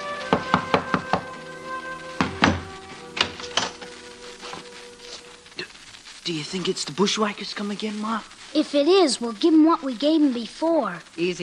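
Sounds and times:
knock on a door: 0.3s - 1.3s, 2.2s - 2.7s
speech: 6.3s - 11.4s.

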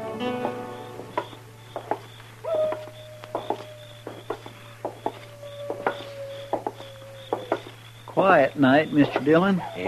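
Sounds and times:
coyote howling: 0.3s - 9.8s
speech: 8.9s - 9.8s.

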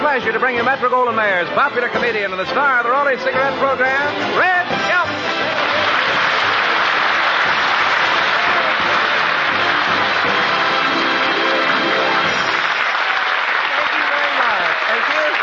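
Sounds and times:
speech: 0.2s - 4.8s
cast applauding: 4.4s - 15.4s.

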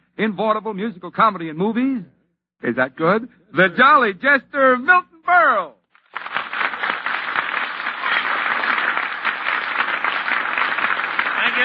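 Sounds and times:
speech: 0.2s - 5.8s
studio audience applause: 6.0s - 11.6s.

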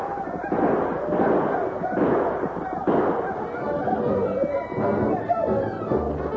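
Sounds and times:
rifle gunfire during a battle: 0.0s - 4.0s
roar of shouting voices: 0.0s - 6.3s.

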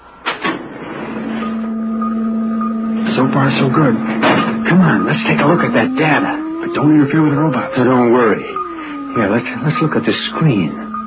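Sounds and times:
motorized door mechanical hum and low whine: 0.0s - 11.0s
speech: 3.2s - 8.6s, 9.2s - 10.8s
door opening clunks: 4.1s - 4.6s.

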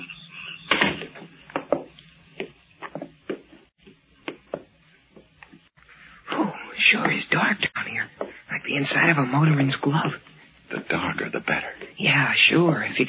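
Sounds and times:
door thud: 0.7s - 1.2s
speech: 6.9s - 13.0s.

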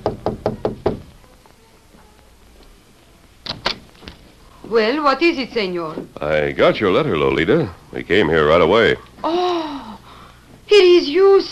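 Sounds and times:
knocking on a door: 0.0s - 1.1s
speech: 4.7s - 9.6s.

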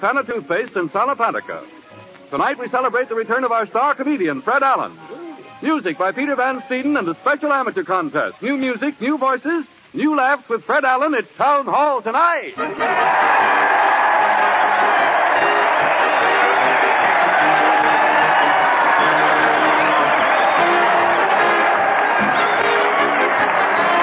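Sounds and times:
speech: 0.0s - 13.6s
crowd cheering: 12.6s - 24.0s.

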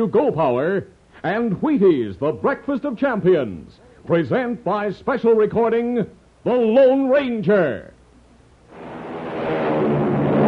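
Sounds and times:
speech: 0.0s - 7.9s
airliner taking off with rushing engine roar: 8.7s - 10.4s.

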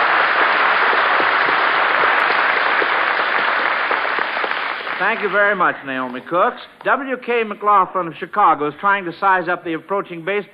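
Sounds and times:
audience applause: 0.0s - 5.7s
speech: 5.0s - 10.5s.

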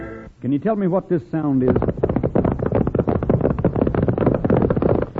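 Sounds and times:
speech: 0.6s - 1.9s
horses galloping: 1.6s - 5.1s.

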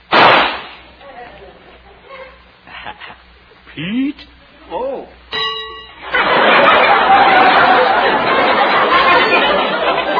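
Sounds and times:
rifle shot: 0.1s - 0.8s
laughter: 1.5s - 3.2s, 6.0s - 10.1s
speech: 3.8s - 5.2s.

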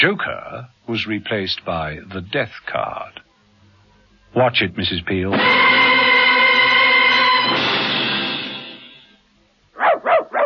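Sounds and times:
speech: 0.0s - 3.2s, 4.3s - 5.9s
sustained harmonic tone: 5.4s - 9.0s
dog barking: 9.8s - 10.4s.

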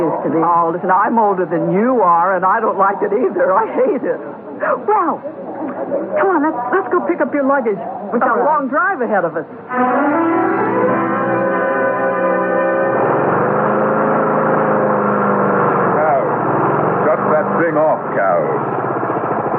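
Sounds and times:
speech: 0.2s - 10.5s, 17.6s - 18.8s
lawn mower running: 10.6s - 19.5s.

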